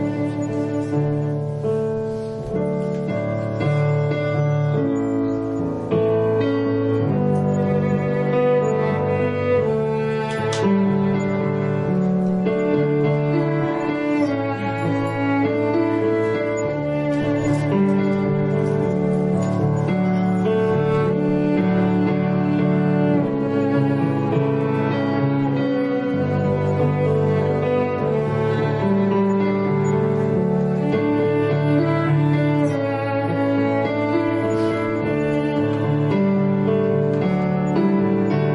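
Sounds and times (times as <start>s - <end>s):
piano playing a prelude: 0.0s - 38.5s
violin playing a prelude: 0.0s - 38.5s.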